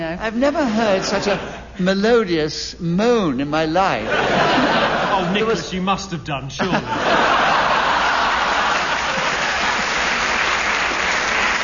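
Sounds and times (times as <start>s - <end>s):
speech: 0.0s - 7.3s
laughter: 0.6s - 1.8s, 4.0s - 5.8s, 6.6s - 10.4s
audience clapping: 7.2s - 11.6s.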